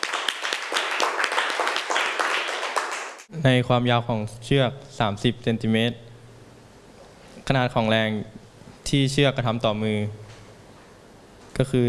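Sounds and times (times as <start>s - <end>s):
classroom applause: 0.0s - 3.3s
speech: 3.4s - 6.1s, 7.5s - 8.3s, 8.9s - 10.2s, 11.6s - 11.8s.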